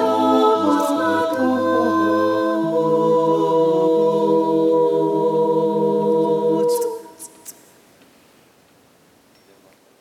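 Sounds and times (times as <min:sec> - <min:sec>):
four-part SATB choir singing: 0:00.0 - 0:07.5.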